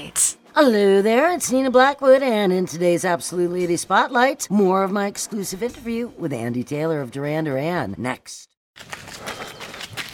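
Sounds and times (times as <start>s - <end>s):
speech: 0.1s - 9.4s
footsteps of a runner on a wintry morning run: 8.8s - 10.1s.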